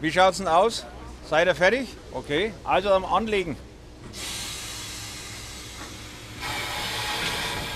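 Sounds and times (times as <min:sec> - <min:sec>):
speech: 0:00.0 - 0:04.4
steam train air brake test hiss: 0:04.1 - 0:07.7.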